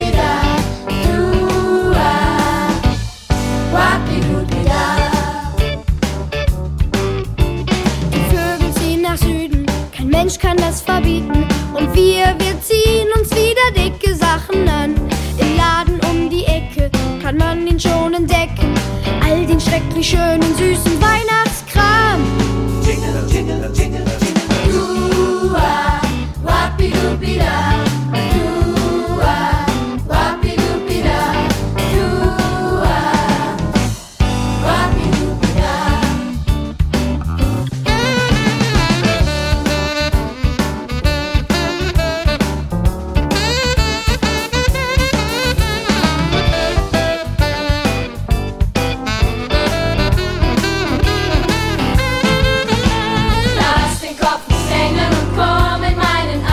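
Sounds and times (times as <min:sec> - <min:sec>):
rainy weather blues music: 0:00.0 - 0:56.5.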